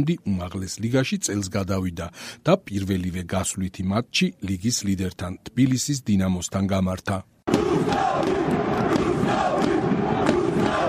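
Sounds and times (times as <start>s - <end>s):
speech: 0.0s - 8.9s
football fans chanting for their team after a win: 7.5s - 10.8s.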